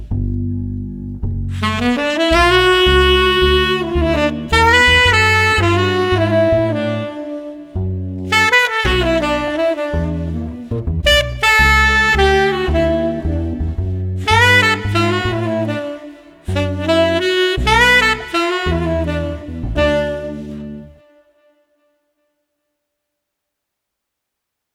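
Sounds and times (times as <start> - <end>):
smooth street sax combo without drums: 1.5 - 21.2.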